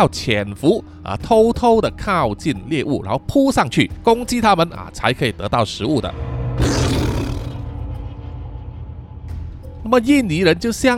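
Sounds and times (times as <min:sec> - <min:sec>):
speech: 0:00.0 - 0:06.4, 0:09.8 - 0:10.9
Sumatran tiger roar: 0:06.6 - 0:07.9.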